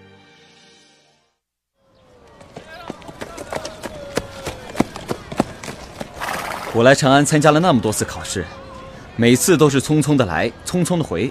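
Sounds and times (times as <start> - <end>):
horse hooves clip-clopping as a rider tours through Chang'an: 2.2 - 6.8
speech: 6.8 - 8.6, 9.2 - 11.3.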